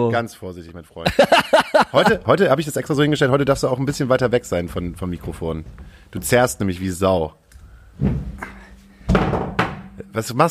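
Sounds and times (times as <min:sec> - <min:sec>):
speech: 0:00.0 - 0:07.4, 0:08.0 - 0:08.5, 0:10.1 - 0:10.4
laughter: 0:01.0 - 0:02.4
mobile phone dropped on the floor: 0:09.0 - 0:09.9.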